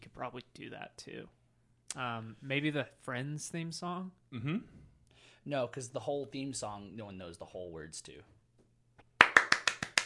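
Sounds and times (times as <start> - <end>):
speech: 0.2 - 4.8, 5.4 - 8.4
hand claps: 9.0 - 10.0.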